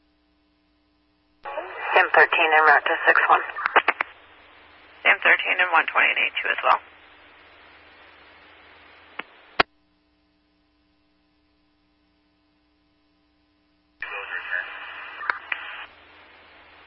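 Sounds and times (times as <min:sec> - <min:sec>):
low hum: 0:00.0 - 0:16.8
police radio static: 0:01.4 - 0:09.7, 0:14.0 - 0:16.8
speech: 0:02.0 - 0:03.7, 0:05.2 - 0:06.9.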